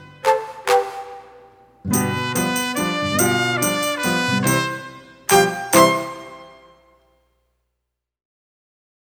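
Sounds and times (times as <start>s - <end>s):
slow Mexican clapping song: 2.0s - 6.3s.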